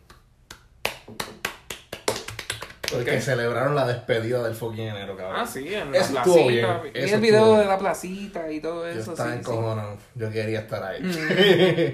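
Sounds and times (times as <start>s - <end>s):
brief applause: 0.8s - 3.1s
speech: 2.9s - 11.9s
laughter: 11.0s - 11.9s.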